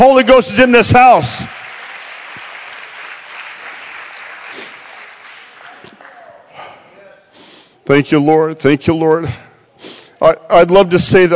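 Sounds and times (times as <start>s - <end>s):
speech: 0.0s - 1.6s, 7.9s - 9.4s, 10.2s - 11.3s
audience clapping hands: 0.9s - 6.6s.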